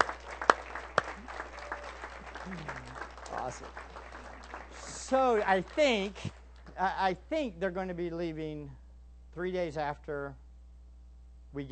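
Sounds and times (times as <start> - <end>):
audience applause in a church: 0.0 - 6.3
speech: 2.5 - 3.9, 5.1 - 8.8, 9.4 - 10.4, 11.5 - 11.7.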